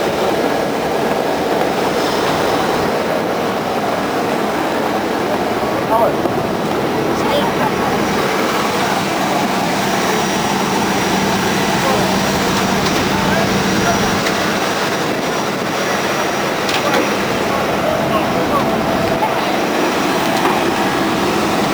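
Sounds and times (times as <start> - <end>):
interior and exterior ambience exiting a plane to the tarmac: 0.0 - 21.7
laughter: 4.0 - 21.7.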